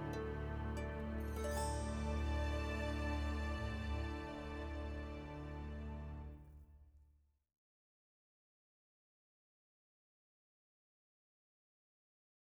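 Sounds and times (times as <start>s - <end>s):
soprano singing: 0.0s - 6.1s.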